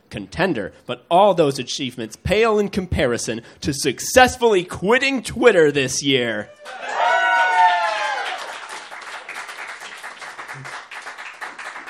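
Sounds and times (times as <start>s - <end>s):
speech: 0.1s - 6.9s
audience applause: 6.6s - 11.8s.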